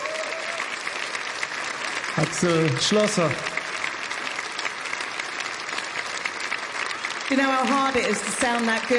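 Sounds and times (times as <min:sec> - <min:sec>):
audience applause: 0:00.0 - 0:08.9
speech: 0:02.2 - 0:03.6, 0:07.3 - 0:08.9.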